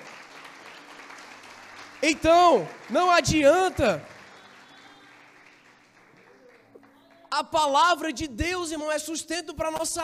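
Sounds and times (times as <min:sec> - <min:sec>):
audience applauding: 0:00.0 - 0:07.8
speech: 0:02.0 - 0:04.1, 0:07.4 - 0:10.0.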